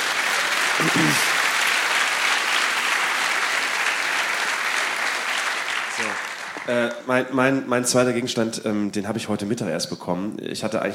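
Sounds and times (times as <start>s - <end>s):
audience applause: 0.0s - 7.0s
speech: 6.7s - 10.9s.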